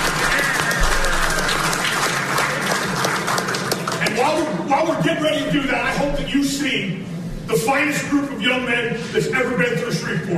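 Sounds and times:
crowd applauding: 0:00.0 - 0:04.5
speech: 0:05.1 - 0:10.3.

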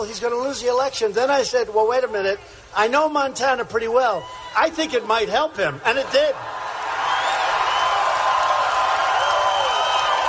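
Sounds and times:
speech: 0:00.0 - 0:06.6
huge crowd cheering: 0:04.1 - 0:10.2.

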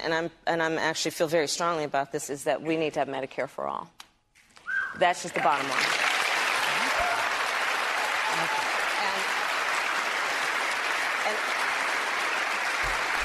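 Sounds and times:
speech: 0:00.0 - 0:04.0, 0:05.0 - 0:06.0
audience clapping: 0:05.4 - 0:13.2.

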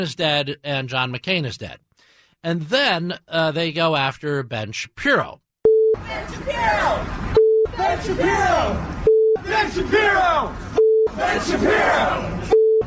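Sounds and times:
speech: 0:00.0 - 0:12.8
censor bleep over a swear word: 0:05.7 - 0:06.0, 0:07.4 - 0:07.7, 0:09.1 - 0:09.4, 0:12.5 - 0:12.8.

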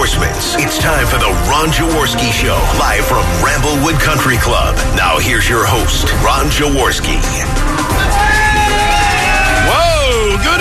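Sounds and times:
speech: 0:00.8 - 0:08.2
crowd cheering, whooping and shouting at a live show at Ramblewood Country Club: 0:07.7 - 0:10.5.

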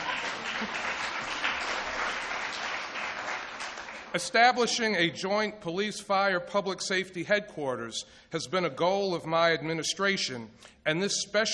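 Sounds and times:
audience applause: 0:00.0 - 0:04.2
speech: 0:04.1 - 0:11.5.

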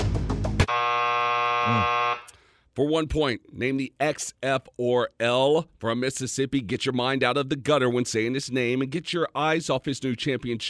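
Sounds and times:
quiz buzzer: 0:00.6 - 0:02.4
burst of busy noise: 0:00.7 - 0:02.3
speech: 0:02.8 - 0:10.6.

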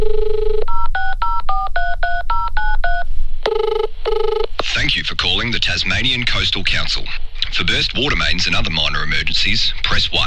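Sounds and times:
telephone dial tone: 0:00.0 - 0:04.5
touch-tone keypad beeps: 0:00.6 - 0:04.2
speech: 0:05.4 - 0:10.2.

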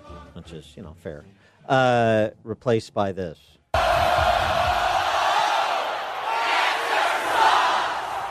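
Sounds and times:
speech: 0:00.4 - 0:04.3
stadium crowd chanting: 0:03.8 - 0:08.3.

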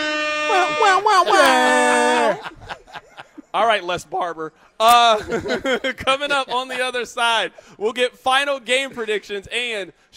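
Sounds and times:
voice imitating a game-show buzzer: 0:00.0 - 0:01.8
laughter: 0:00.5 - 0:03.8, 0:04.9 - 0:07.1
speech: 0:03.6 - 0:10.1.

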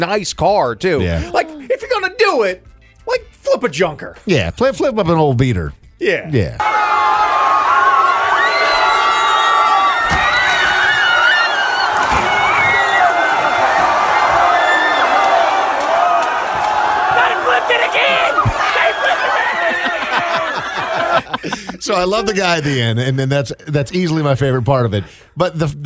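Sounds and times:
speech: 0:00.0 - 0:01.4, 0:02.0 - 0:06.7, 0:21.9 - 0:25.8
laughter: 0:01.0 - 0:01.8, 0:17.1 - 0:24.0
excited crowd of students cheering and shouting: 0:06.6 - 0:21.4.

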